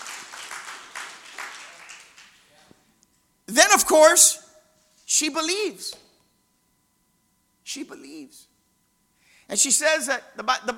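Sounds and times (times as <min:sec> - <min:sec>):
audience clapping: 0:00.0 - 0:02.6
speech: 0:03.9 - 0:04.4, 0:05.1 - 0:06.0, 0:07.7 - 0:08.5, 0:09.5 - 0:10.7.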